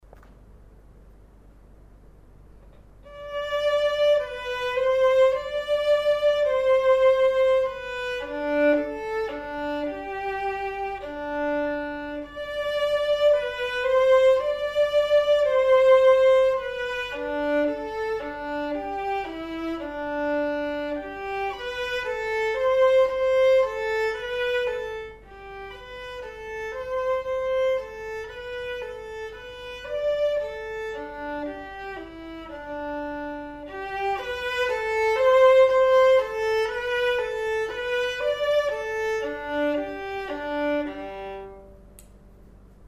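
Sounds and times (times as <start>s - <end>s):
violin performance: 3.0s - 42.0s.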